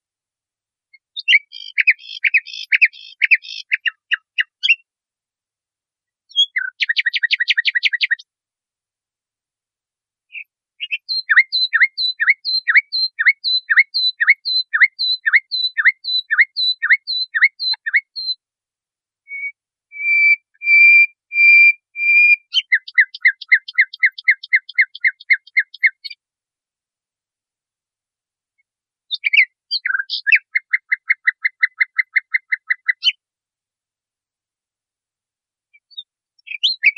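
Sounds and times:
nightingale singing: 1.0s - 4.9s, 6.3s - 8.2s, 10.3s - 18.4s, 19.3s - 26.2s, 29.1s - 33.2s, 35.7s - 36.9s.

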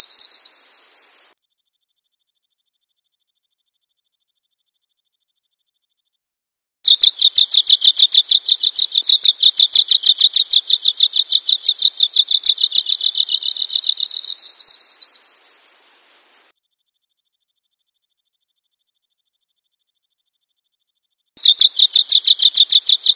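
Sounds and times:
bird chirping: 0.0s - 1.4s, 6.9s - 16.5s, 21.4s - 23.1s.

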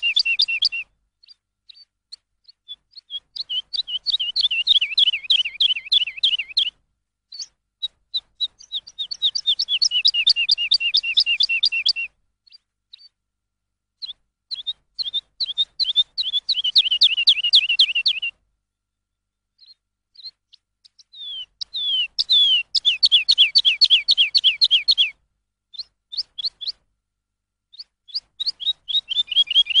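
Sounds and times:
lark song: 0.0s - 13.2s, 14.0s - 26.9s, 27.7s - 29.7s.

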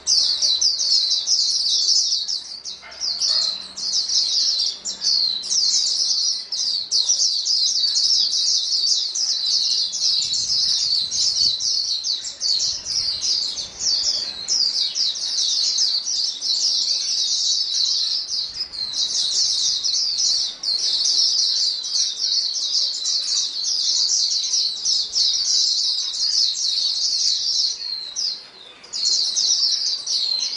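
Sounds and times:
white-eye chorus twittering: 0.0s - 30.5s.

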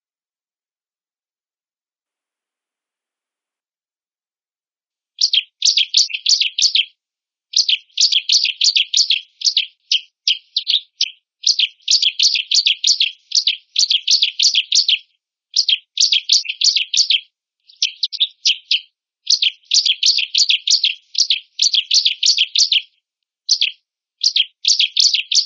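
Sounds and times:
ciblek bird calling: 5.2s - 6.9s, 7.5s - 22.9s, 23.5s - 25.4s.

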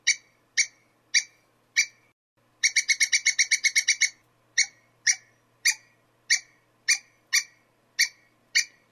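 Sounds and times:
squirrel calling with harsh sharp notes: 0.0s - 8.9s.

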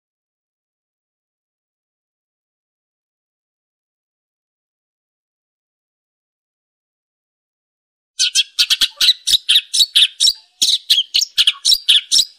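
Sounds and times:
long-tailed shrike chattering song: 8.2s - 12.3s.

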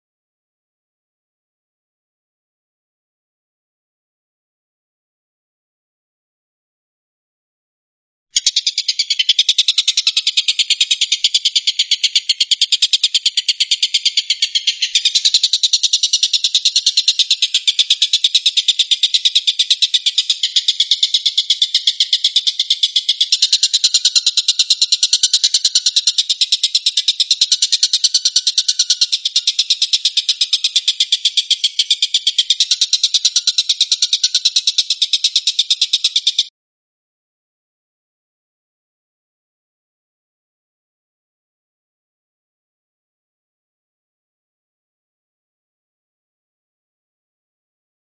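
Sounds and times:
stork-billed kingfisher rattling call: 8.4s - 36.5s.

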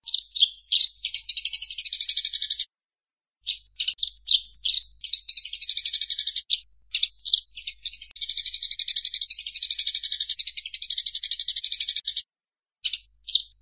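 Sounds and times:
Eurasian tree sparrow chirps: 0.0s - 2.7s, 3.4s - 13.6s.

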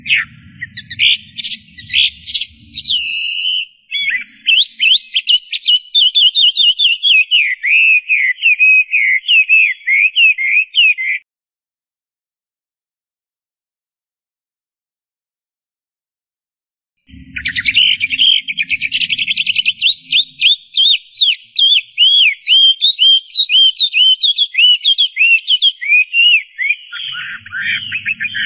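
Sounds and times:
Chinese hwamei singing loud rapid whistled phrases: 0.0s - 11.2s, 17.1s - 28.4s.

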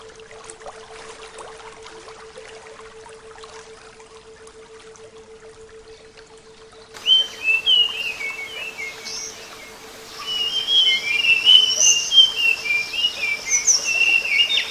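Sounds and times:
faint hum: 0.0s - 14.6s
background hiss: 7.0s - 14.6s
flycatcher singing: 7.0s - 14.6s.

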